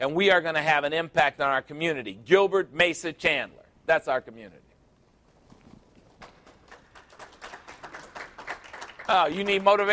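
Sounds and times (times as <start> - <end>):
speech: 0.0 - 4.6, 9.1 - 9.9
clapping: 6.2 - 9.9.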